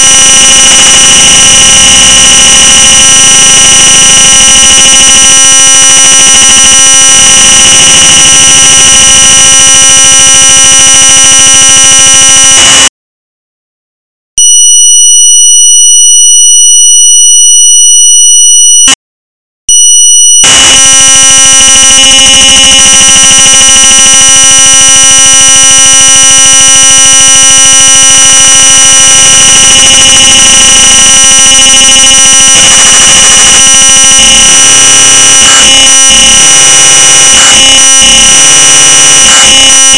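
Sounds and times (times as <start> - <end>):
3600 baud modem data tones: 0.0 - 12.9, 14.4 - 19.0, 19.7 - 39.9.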